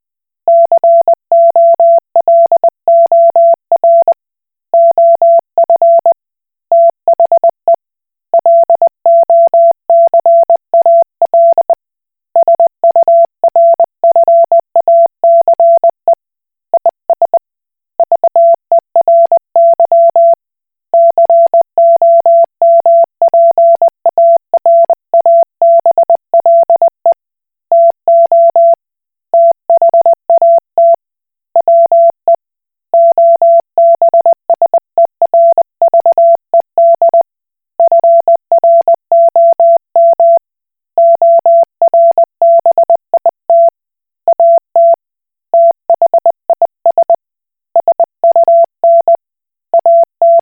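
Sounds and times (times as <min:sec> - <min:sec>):
Koch Morse code beeps: 0:00.5 - 0:04.1, 0:04.8 - 0:06.2, 0:06.7 - 0:07.5, 0:08.4 - 0:11.8, 0:12.4 - 0:15.9, 0:18.0 - 0:20.4, 0:21.0 - 0:27.2, 0:27.7 - 0:28.8, 0:29.4 - 0:31.0, 0:31.6 - 0:32.2, 0:33.0 - 0:37.2, 0:37.8 - 0:43.7, 0:44.3 - 0:45.0, 0:45.5 - 0:47.2, 0:47.8 - 0:49.2, 0:49.7 - 0:50.4.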